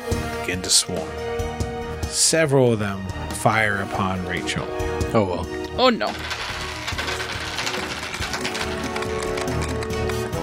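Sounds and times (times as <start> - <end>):
speech: 0.5 - 6.4
dice bouncing: 6.1 - 10.4.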